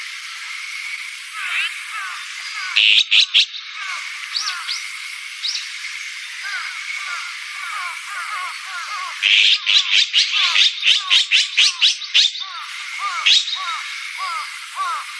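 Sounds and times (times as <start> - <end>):
thin chirps from small birds: 0.7 - 15.1
azure-winged magpie rasps: 1.4 - 4.8, 6.4 - 15.1.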